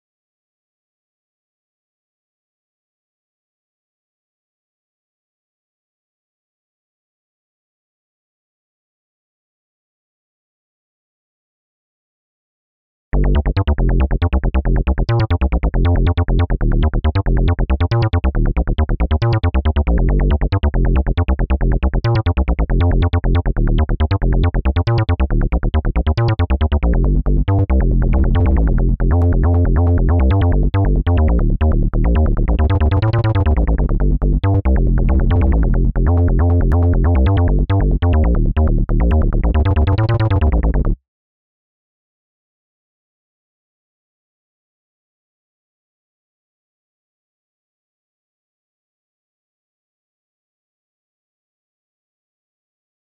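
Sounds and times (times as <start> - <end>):
bass: 13.1 - 41.0.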